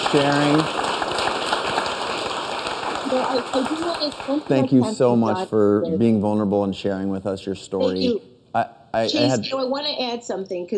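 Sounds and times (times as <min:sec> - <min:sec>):
audience round of applause: 0:00.0 - 0:05.4
speech: 0:00.1 - 0:00.8, 0:03.1 - 0:10.7.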